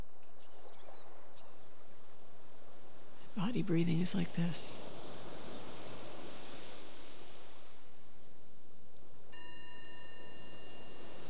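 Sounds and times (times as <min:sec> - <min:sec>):
speech: 0:03.4 - 0:04.9
meditation bell ringing: 0:09.4 - 0:11.2.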